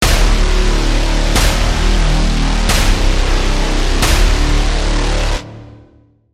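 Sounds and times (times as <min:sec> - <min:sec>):
braam: 0:00.0 - 0:06.0.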